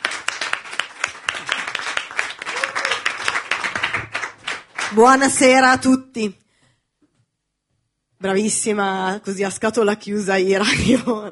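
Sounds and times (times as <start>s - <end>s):
audience applause: 0.0s - 5.0s
speech: 4.9s - 6.4s, 8.2s - 11.3s.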